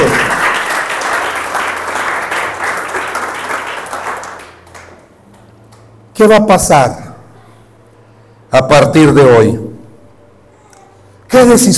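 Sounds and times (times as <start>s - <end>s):
audience applause: 0.0s - 5.0s
speech: 6.2s - 7.0s, 8.5s - 9.6s, 11.3s - 11.7s.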